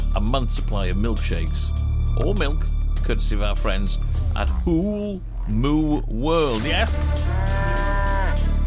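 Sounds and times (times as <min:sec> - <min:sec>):
speech: 0:00.2 - 0:07.5
black and white dairy cow mooing: 0:07.1 - 0:08.6.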